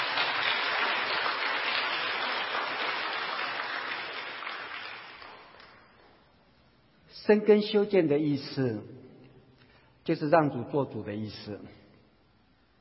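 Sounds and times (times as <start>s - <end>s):
audience applause: 0.0s - 5.8s
speech: 7.3s - 9.0s, 10.1s - 11.8s.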